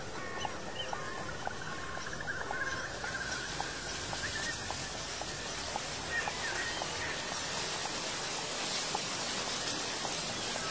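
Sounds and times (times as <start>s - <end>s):
thin high bird calls: 0.0s - 7.8s
horse hooves on an old road: 0.0s - 10.6s
dry fallen leaves rustling: 0.2s - 10.6s.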